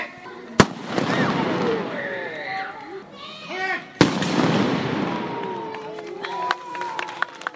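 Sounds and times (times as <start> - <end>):
children's voices: 0.0 - 4.0
crowd chattering: 0.0 - 7.5
matchlock gunshots in demonstration: 0.6 - 2.0, 4.0 - 5.5.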